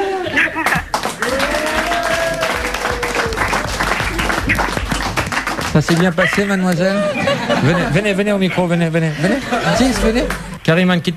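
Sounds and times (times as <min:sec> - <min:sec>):
comedy show audience calling and cheering: 0:00.0 - 0:04.9, 0:05.8 - 0:10.6
comedy show audience applauding in a standing ovation: 0:00.6 - 0:07.8
laughter: 0:01.4 - 0:10.6
speech: 0:05.8 - 0:11.1.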